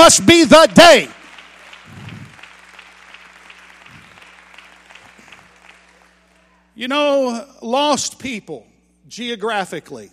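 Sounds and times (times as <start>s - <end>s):
audience clapping hands: 0.0s - 6.8s
speech: 0.1s - 1.2s, 6.8s - 10.1s.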